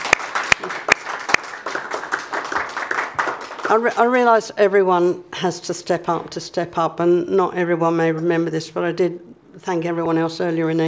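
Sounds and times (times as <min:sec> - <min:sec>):
audience applause: 0:00.0 - 0:04.0
speech: 0:03.7 - 0:10.8.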